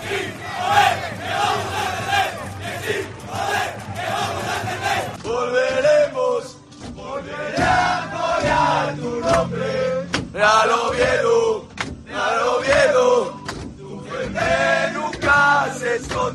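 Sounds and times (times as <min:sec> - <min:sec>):
people shouting: 0:00.0 - 0:05.2
sharp claps: 0:00.0 - 0:05.2
football players chanting together on a bus: 0:00.0 - 0:16.3.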